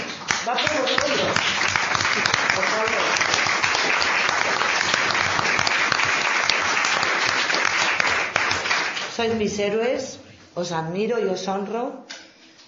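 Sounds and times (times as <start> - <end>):
audience applause: 0.0 - 9.2
speech: 9.2 - 12.1.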